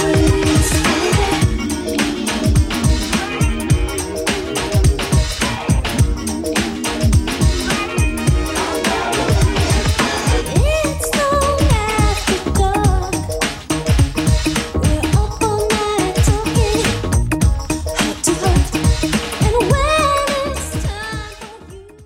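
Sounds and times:
90s drum beat: 0.0 - 21.6.

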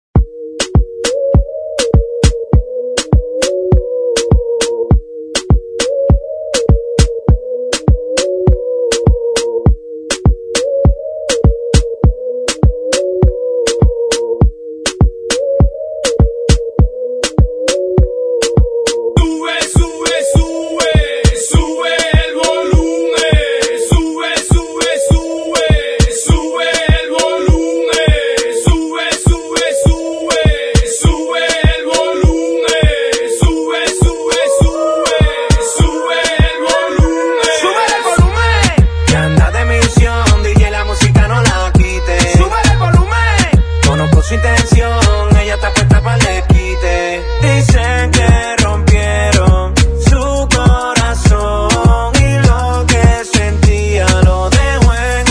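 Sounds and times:
hype intro music: 0.3 - 55.2.

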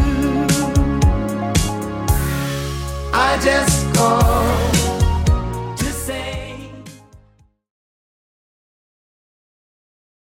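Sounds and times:
80s style music: 0.0 - 7.5.

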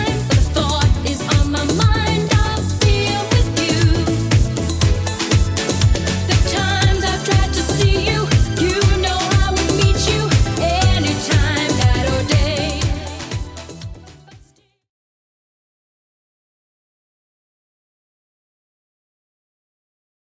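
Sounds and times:
80s drum machine beat at 120 bpm: 0.0 - 14.2.

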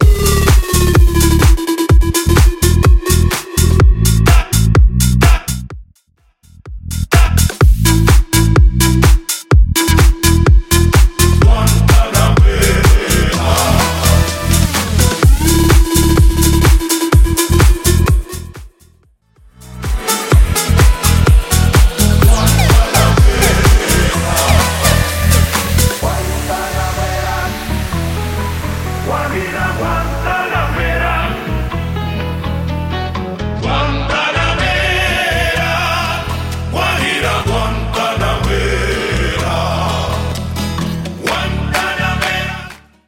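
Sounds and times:
house music: 0.0 - 5.8, 6.5 - 42.8.

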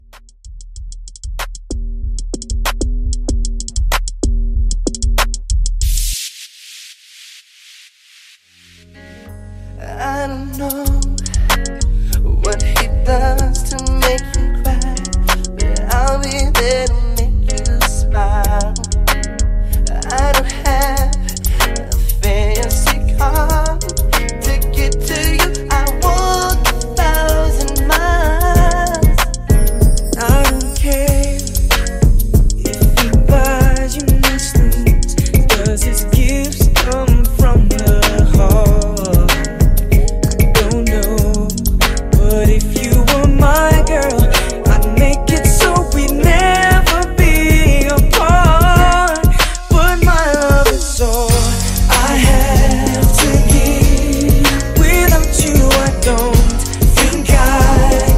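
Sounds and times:
90s R&B funky bass at 95 BPM: 0.0 - 6.2, 8.8 - 58.1.

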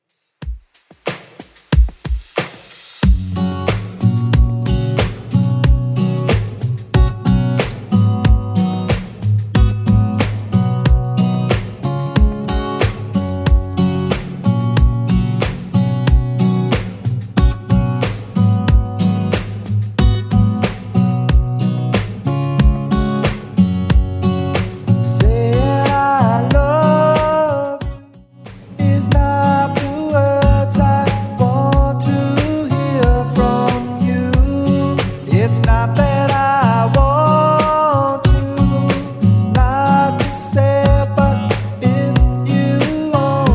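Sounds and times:
clean 90s drum beat: 0.4 - 27.5, 28.5 - 43.5.

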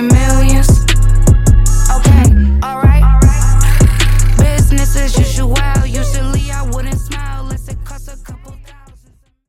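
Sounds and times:
DJ intro outro music at 77 BPM: 0.2 - 7.7.

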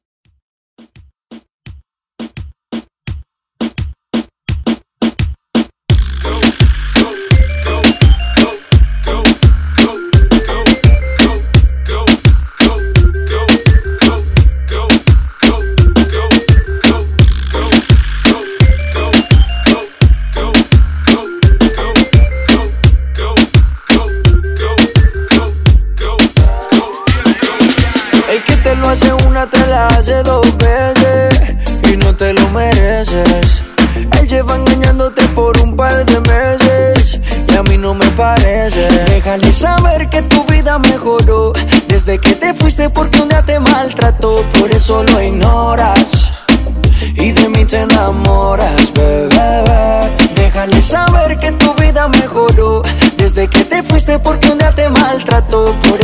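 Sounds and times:
reggaeton music: 0.8 - 56.0.

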